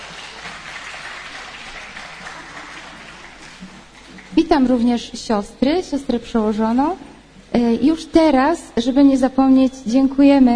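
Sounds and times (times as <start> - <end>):
audience applause: 0.0 - 4.7
speech: 4.5 - 10.5.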